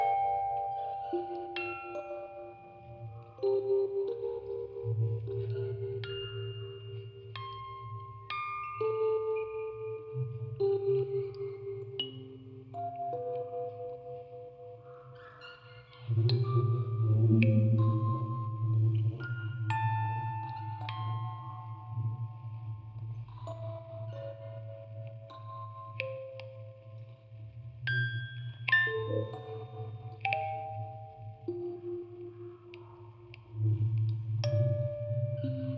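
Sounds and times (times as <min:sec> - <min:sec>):
music box quartet: 0:00.0 - 0:33.5
field recording: 0:00.0 - 0:35.7
vocoder: 0:16.0 - 0:19.7.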